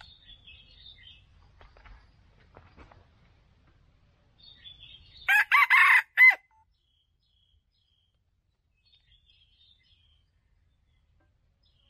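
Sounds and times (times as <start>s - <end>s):
red junglefowl crowing: 5.3s - 6.5s.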